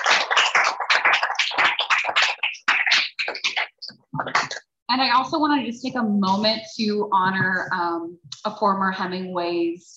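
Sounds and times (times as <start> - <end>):
audience applause: 0.0 - 4.5
speech: 5.0 - 9.9.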